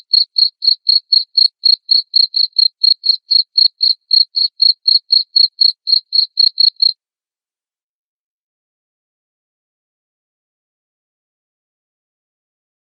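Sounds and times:
cricket chirps: 0:00.0 - 0:06.9.

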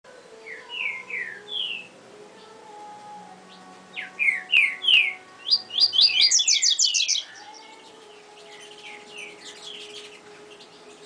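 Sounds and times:
Double-collared seedeater singing down-slurred and buzzy notes: 0:00.1 - 0:11.0.

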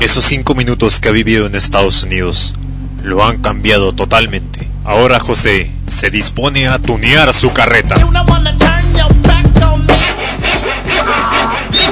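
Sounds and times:
speech: 0:00.0 - 0:10.0
sawing: 0:09.6 - 0:11.9.

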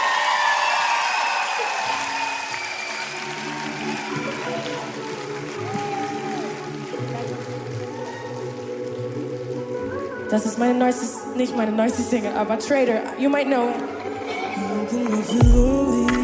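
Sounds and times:
concert audience clapping and whooping at a live pop music event: 0:00.0 - 0:10.9
speech: 0:10.3 - 0:14.0, 0:15.1 - 0:16.1.

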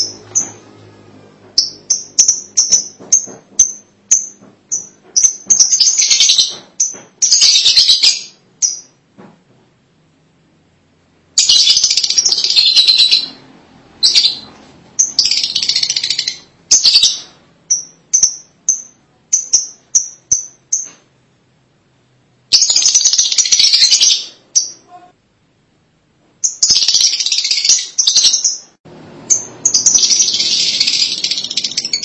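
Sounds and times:
lovebird chattering: 0:01.6 - 0:08.9, 0:11.4 - 0:13.4, 0:14.0 - 0:21.0, 0:22.5 - 0:25.1, 0:26.4 - 0:28.7, 0:29.3 - 0:32.0.

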